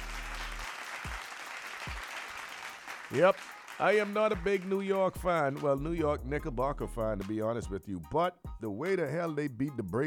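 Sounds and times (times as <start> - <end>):
round of applause: 0.0 - 5.0
speech: 3.1 - 10.0.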